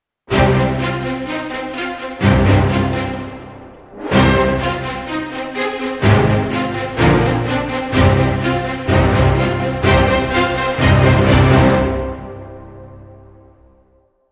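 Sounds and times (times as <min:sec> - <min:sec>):
orchestral hybrid sting: 0:00.3 - 0:13.4.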